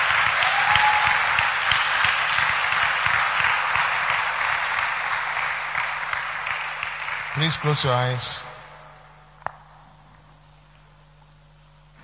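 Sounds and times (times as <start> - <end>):
audience applause: 0.0 - 8.5
speech: 7.4 - 8.5.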